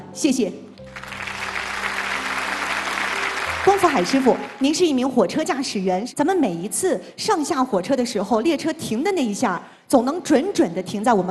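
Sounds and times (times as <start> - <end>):
speech: 0.2 - 1.1, 3.6 - 11.3
audience at a press conference clapping: 0.8 - 5.0.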